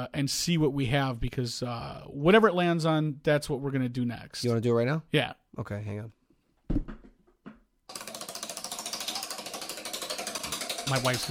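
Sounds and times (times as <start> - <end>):
speech: 0.0 - 6.9, 10.9 - 11.2
spinning prize wheel clicking: 7.9 - 11.2.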